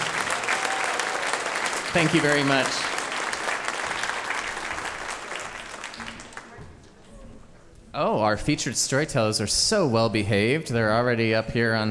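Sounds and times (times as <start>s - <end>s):
audience applause: 0.0s - 6.6s
speech: 2.0s - 2.9s, 8.0s - 11.8s.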